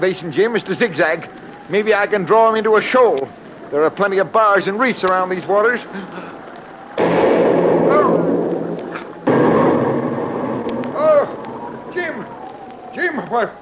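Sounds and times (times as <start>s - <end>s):
speech: 0.0s - 6.4s, 13.0s - 13.6s
artillery shell exploding near a boat: 6.9s - 12.9s.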